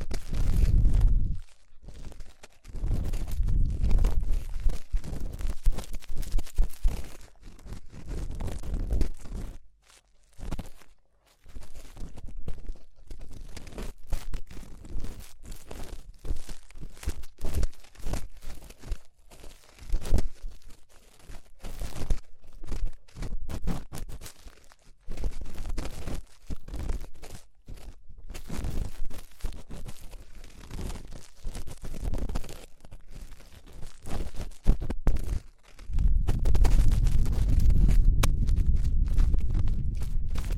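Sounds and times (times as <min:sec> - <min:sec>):
ear cleaning crackling and scratching: 0:00.0 - 0:40.5
low thumps and rubbing: 0:35.9 - 0:40.5.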